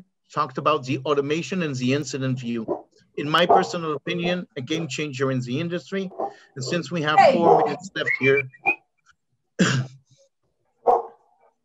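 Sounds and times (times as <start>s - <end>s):
speech: 0.3s - 8.7s
pet dog barking: 3.4s - 3.8s, 6.1s - 7.8s, 10.8s - 11.2s.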